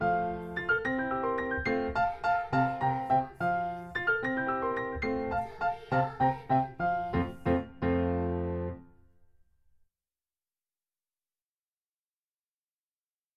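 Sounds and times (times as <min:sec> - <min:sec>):
piano: 0:00.0 - 0:09.4.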